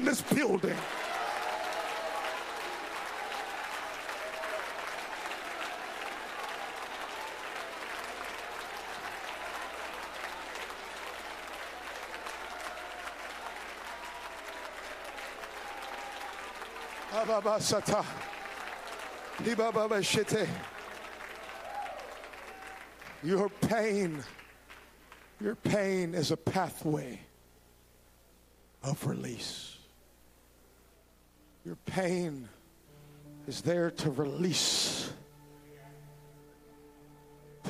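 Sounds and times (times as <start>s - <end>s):
crowd clapping: 0.0s - 25.9s
speech: 0.1s - 1.1s, 17.2s - 18.4s, 19.4s - 20.7s, 23.2s - 24.4s, 25.4s - 27.3s, 28.8s - 29.7s, 31.6s - 32.6s, 33.5s - 34.8s.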